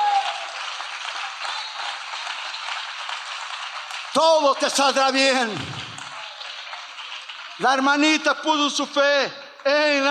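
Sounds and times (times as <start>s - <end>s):
audience applause: 0.0s - 9.0s
speech: 4.2s - 5.7s, 7.6s - 10.0s.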